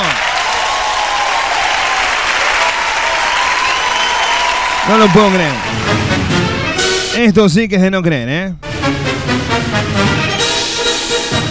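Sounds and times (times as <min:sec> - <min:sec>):
crowd applause: 0:00.0 - 0:06.7
speech: 0:04.9 - 0:06.3, 0:07.2 - 0:10.5.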